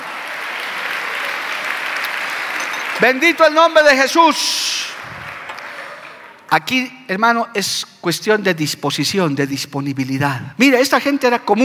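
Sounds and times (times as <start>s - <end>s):
audience applause: 0.0s - 6.5s
speech: 3.0s - 4.9s, 6.5s - 11.6s.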